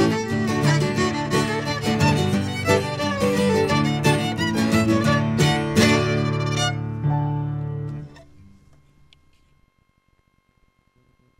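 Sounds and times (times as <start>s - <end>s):
fiddle hornpipe tune: 0.0s - 7.8s.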